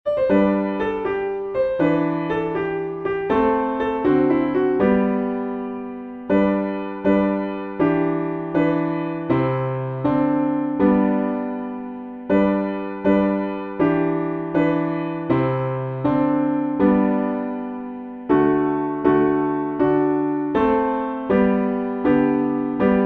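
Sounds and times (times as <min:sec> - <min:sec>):
piano backing: 0:00.0 - 0:23.0.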